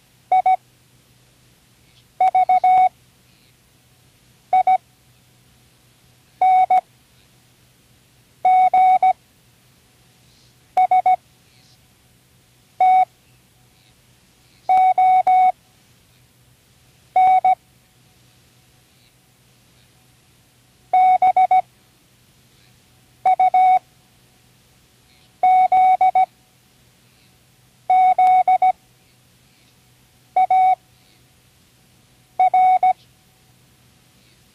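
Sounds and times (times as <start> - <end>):
Morse code: 0.3 - 0.6, 2.2 - 2.9, 4.5 - 4.8, 6.4 - 6.8, 8.5 - 9.2, 10.8 - 11.2, 12.8 - 13.1, 14.7 - 15.5, 17.2 - 17.6, 21.0 - 21.6, 23.3 - 23.8, 25.4 - 26.3, 27.9 - 28.7, 30.4 - 30.8, 32.4 - 33.0.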